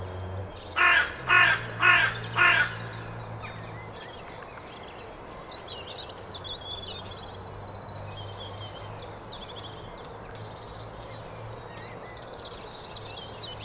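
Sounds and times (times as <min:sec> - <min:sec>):
carrion crow cawing: 0:00.8 - 0:03.2.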